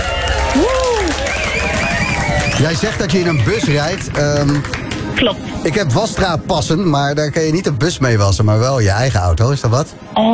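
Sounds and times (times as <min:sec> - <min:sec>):
applause: 0:00.0 - 0:05.3
swooping tonal whistle-like glide: 0:00.4 - 0:04.3
speech: 0:02.6 - 0:10.3.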